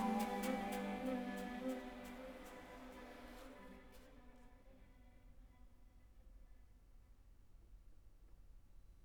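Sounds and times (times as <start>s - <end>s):
chamber orchestra ground improvisation: 0.0s - 2.6s.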